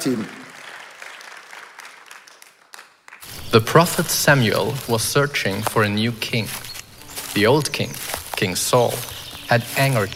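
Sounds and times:
speech: 0.0s - 0.4s, 3.6s - 6.7s, 7.4s - 10.1s
round of applause: 0.0s - 3.9s.

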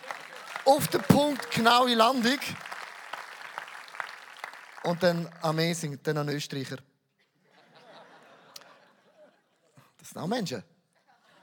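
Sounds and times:
crowd clapping: 0.0s - 5.9s
speech: 0.7s - 2.7s, 4.8s - 6.9s, 10.2s - 10.7s
laughter: 7.5s - 9.7s, 11.0s - 11.4s.

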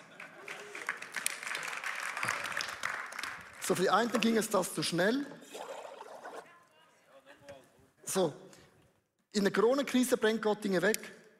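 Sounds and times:
applause: 0.0s - 4.5s
speech: 3.7s - 5.4s, 8.2s - 8.4s, 9.4s - 11.2s.

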